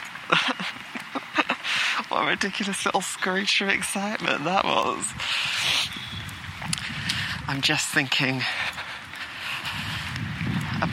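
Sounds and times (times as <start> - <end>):
wind blowing on microphone outdoors: 0.0 - 10.9
speech: 0.3 - 0.8, 2.2 - 5.9, 7.5 - 8.8.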